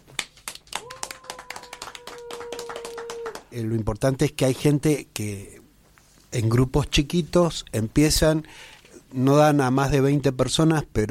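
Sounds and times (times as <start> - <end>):
audience applause: 0.2 - 3.5
speech: 3.5 - 5.6, 6.3 - 11.1.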